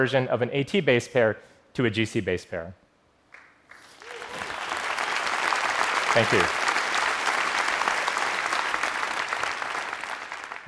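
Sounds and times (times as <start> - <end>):
speech: 0.0 - 2.8, 6.1 - 6.6
audience applause: 3.7 - 10.6.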